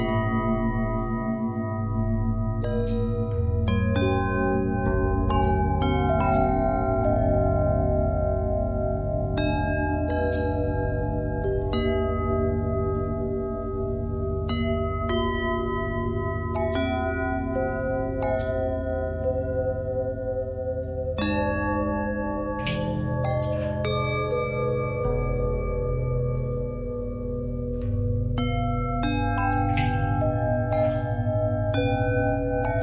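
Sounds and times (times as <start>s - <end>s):
long bell with bend and twist: 0.0s - 32.8s.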